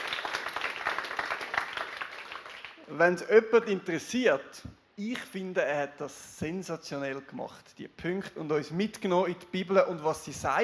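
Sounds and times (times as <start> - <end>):
audience applause: 0.0 - 2.8
speech: 2.9 - 10.6.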